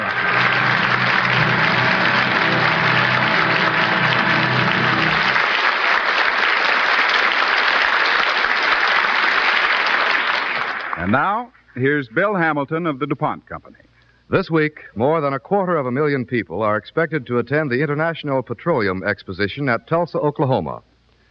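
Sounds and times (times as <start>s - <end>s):
theater audience applause: 0.0s - 11.4s
speech: 11.1s - 20.9s.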